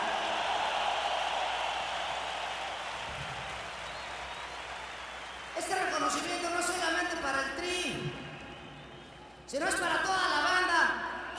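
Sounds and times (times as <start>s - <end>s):
crowd applause at rock concert: 0.0s - 6.4s
speech: 6.0s - 8.2s, 9.5s - 10.8s.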